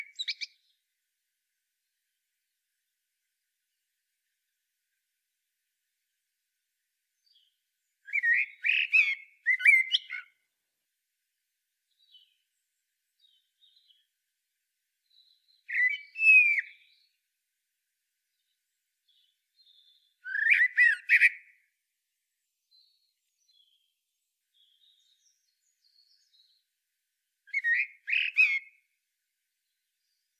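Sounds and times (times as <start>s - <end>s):
common blackbird calls: 0.0s - 0.7s, 8.1s - 10.3s, 15.6s - 17.0s, 19.2s - 21.5s, 27.5s - 28.7s.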